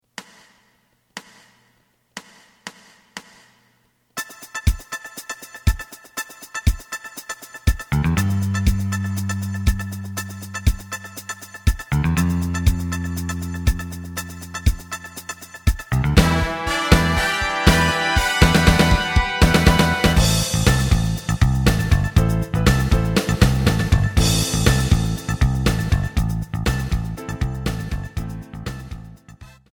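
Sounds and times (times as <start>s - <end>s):
lead melody: 7.9s - 29.3s.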